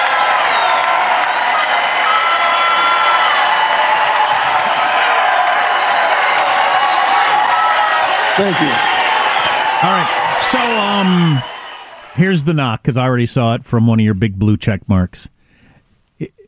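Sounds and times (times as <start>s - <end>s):
whoops: 0.0s - 12.1s
large crowd roaring and chanting: 0.0s - 12.2s
scattered clapping: 0.0s - 12.2s
speech: 8.4s - 8.9s, 9.8s - 11.5s, 12.2s - 15.4s.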